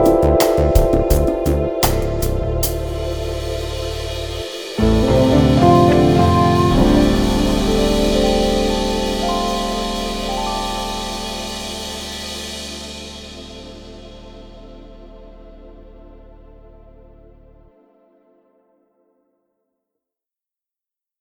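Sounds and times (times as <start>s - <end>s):
instrumental music in D minor without vocals: 0.0s - 15.8s.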